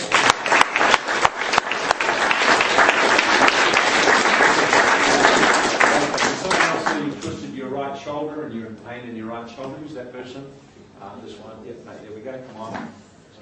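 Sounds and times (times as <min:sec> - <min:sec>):
audience applause: 0:00.0 - 0:07.2
speech: 0:09.6 - 0:13.0.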